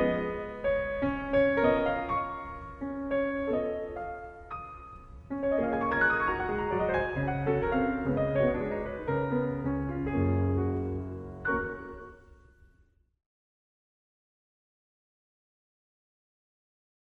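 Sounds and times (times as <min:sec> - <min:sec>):
mazurka on piano: 0:00.0 - 0:12.8.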